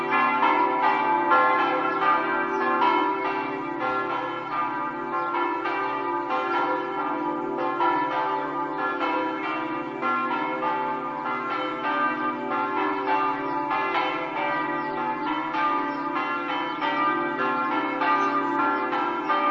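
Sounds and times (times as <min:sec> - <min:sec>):
bells ringing in Premariacco: 0:00.0 - 0:19.4.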